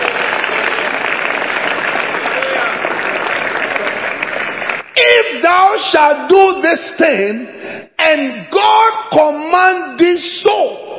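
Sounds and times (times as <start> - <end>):
audience clapping: 0.0 - 5.3
crowd noise: 0.0 - 6.2
speech: 5.5 - 10.8.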